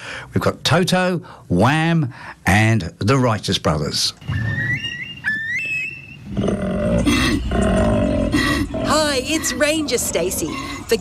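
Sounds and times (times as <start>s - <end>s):
speech: 0.4s - 4.9s, 9.2s - 11.0s
high-pitched whistling calls: 4.2s - 6.4s
male koala breeding-season bellow: 4.2s - 11.0s.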